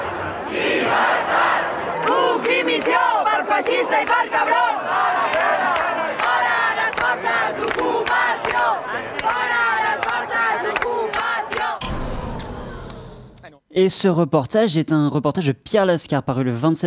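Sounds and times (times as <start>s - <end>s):
protest crowd chanting slogans: 0.0s - 13.4s
speech: 13.8s - 16.8s.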